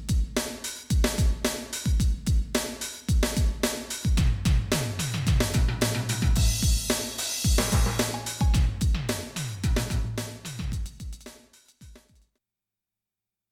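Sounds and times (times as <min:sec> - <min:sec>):
drum: 0:00.0 - 0:12.2
tam-tam: 0:05.8 - 0:10.7.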